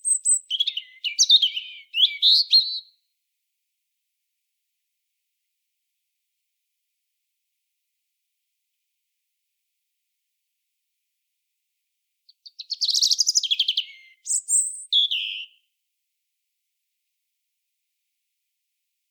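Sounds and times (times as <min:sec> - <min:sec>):
European robin singing: 0:00.0 - 0:03.0, 0:12.3 - 0:15.6.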